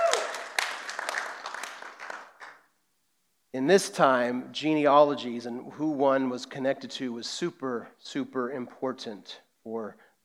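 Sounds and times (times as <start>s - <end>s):
audience clapping: 0.0s - 2.7s
speech: 3.6s - 10.2s.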